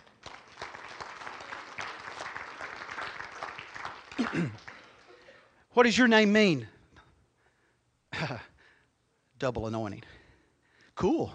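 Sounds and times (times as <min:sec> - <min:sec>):
audience hand clapping: 0:00.0 - 0:05.4
speech: 0:04.2 - 0:04.7, 0:05.8 - 0:06.7, 0:09.4 - 0:10.1, 0:11.0 - 0:11.3.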